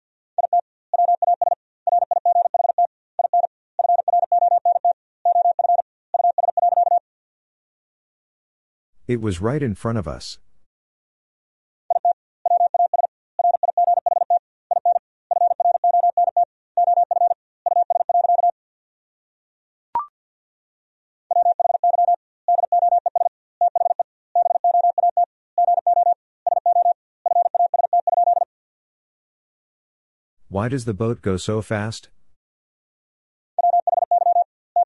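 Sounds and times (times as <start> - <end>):
Morse code beeps sending sentences: 0.4 - 7.0, 11.9 - 18.5, 21.3 - 28.5, 33.6 - 34.8
speech: 9.1 - 10.5, 30.6 - 32.2.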